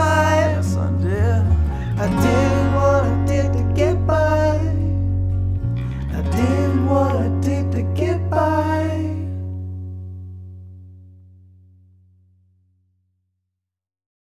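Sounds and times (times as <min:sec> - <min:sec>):
acoustic music: 0:00.0 - 0:11.1.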